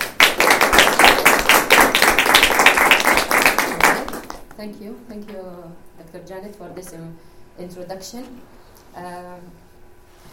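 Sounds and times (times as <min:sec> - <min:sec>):
audience applauding to welcome a speaker at a lecture: 0:00.0 - 0:04.6
speech: 0:04.6 - 0:09.6.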